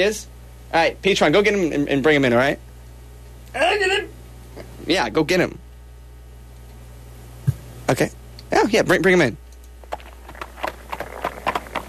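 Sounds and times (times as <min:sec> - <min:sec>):
speech: 0:00.0 - 0:02.7, 0:03.5 - 0:04.1, 0:04.9 - 0:05.6, 0:07.9 - 0:09.4
pony hooves clip-clopping in a music studio: 0:09.8 - 0:11.8.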